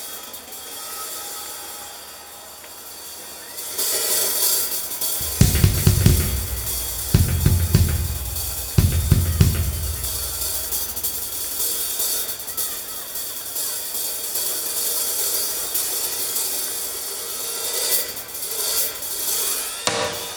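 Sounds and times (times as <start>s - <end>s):
drum solo: 5.2s - 11.7s.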